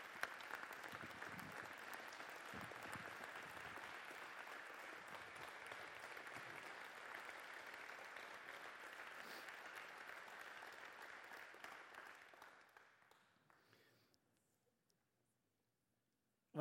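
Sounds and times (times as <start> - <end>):
audience applause: 0.0 - 13.2.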